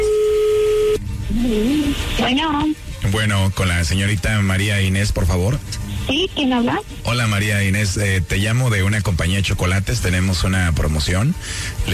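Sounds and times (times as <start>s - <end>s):
lower wavering telephone tone as call connects: 0.0s - 1.9s
speech: 2.3s - 11.9s.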